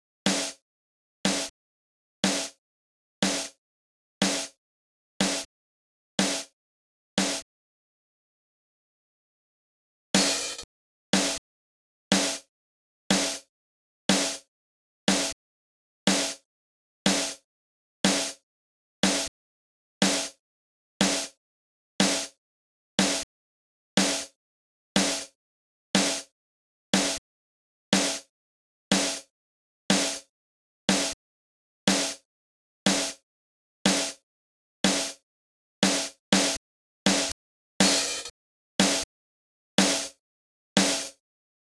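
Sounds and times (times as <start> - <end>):
drums: 0.3 - 0.6, 1.2 - 1.6, 2.2 - 2.6, 3.2 - 3.6, 4.2 - 4.6, 5.2 - 5.5, 6.2 - 6.6, 7.2 - 7.5, 10.2 - 11.4, 12.1 - 12.5, 13.1 - 13.5, 14.1 - 14.5, 15.1 - 15.4, 16.1 - 16.5, 17.1 - 17.4, 18.0 - 18.4, 19.0 - 19.3, 20.0 - 20.4, 21.0 - 21.4, 22.0 - 22.4, 23.0 - 23.3, 24.0 - 24.4, 25.0 - 25.4, 26.0 - 26.3, 26.9 - 27.2, 27.9 - 28.3, 28.9 - 29.3, 29.9 - 30.3, 30.9 - 31.2, 31.9 - 32.3, 32.9 - 33.2, 33.9 - 34.2, 34.8 - 35.2, 35.8 - 39.1, 39.8 - 40.2, 40.8 - 41.2.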